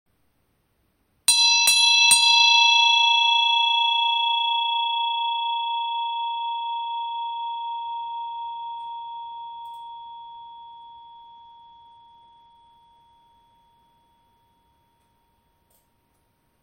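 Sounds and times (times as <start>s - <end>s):
bell ringing: 1.3s - 15.6s.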